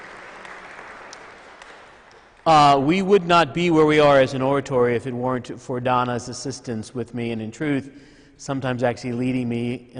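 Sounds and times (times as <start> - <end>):
crowd clapping: 0.0 - 2.8
speech: 2.4 - 9.9.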